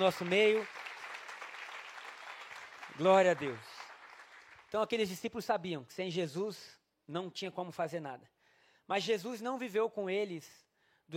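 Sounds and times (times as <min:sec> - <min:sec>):
speech: 0:00.0 - 0:00.8, 0:03.0 - 0:03.7, 0:04.7 - 0:11.1
audience applause: 0:00.0 - 0:04.7.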